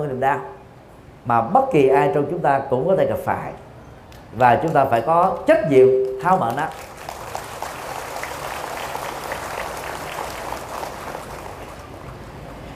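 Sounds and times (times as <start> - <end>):
speech: 0.2 - 0.6, 1.2 - 3.7, 4.3 - 6.9
audience applause: 6.4 - 12.7.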